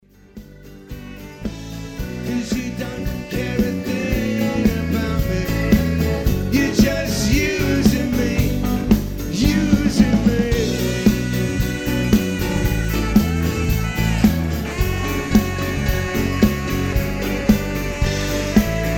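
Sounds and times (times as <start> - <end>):
saxophone solo: 0.2 - 18.9.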